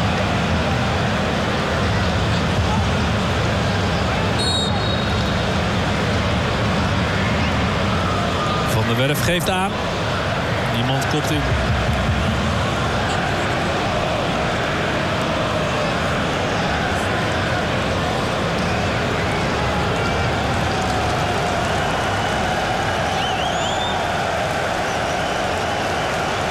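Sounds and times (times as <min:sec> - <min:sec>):
crowd jeering with shouts and whistles: 0:00.0 - 0:26.5
speech: 0:09.0 - 0:09.9, 0:10.8 - 0:11.8
crowd clapping: 0:10.8 - 0:26.5.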